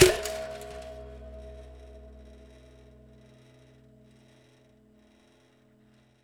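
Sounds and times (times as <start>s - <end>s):
prepared drums: 0.0s - 2.6s.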